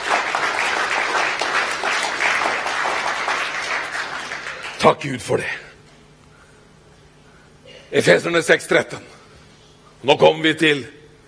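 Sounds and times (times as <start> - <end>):
audience applause: 0.0 - 5.0
speech: 4.8 - 5.7, 7.9 - 9.2, 10.0 - 11.0.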